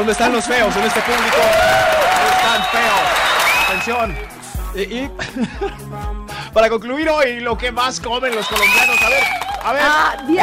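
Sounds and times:
speech: 0.0 - 3.0, 3.7 - 10.4
audience applause: 0.0 - 4.3, 8.3 - 10.4
laughter: 5.2 - 5.8.

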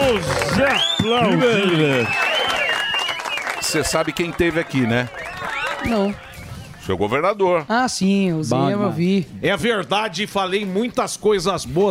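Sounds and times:
voices whooping: 0.0 - 6.8
group clapping: 0.0 - 6.9
speech: 0.1 - 2.3, 3.7 - 5.2, 5.8 - 6.3, 6.9 - 11.8.

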